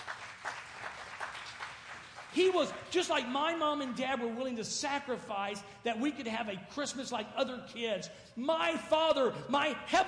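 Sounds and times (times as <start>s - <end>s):
audience clapping: 0.0s - 3.2s
speech: 2.4s - 10.0s.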